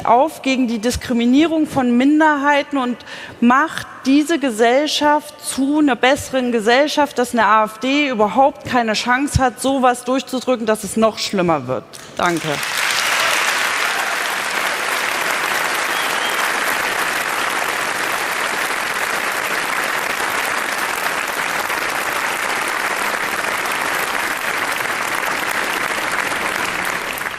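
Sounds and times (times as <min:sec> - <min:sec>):
speech: 0:00.1 - 0:12.8
audience applause: 0:12.4 - 0:27.3.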